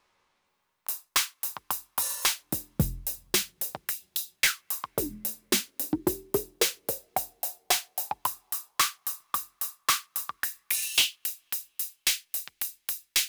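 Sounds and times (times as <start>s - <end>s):
instrumental beat: 0.9s - 13.2s.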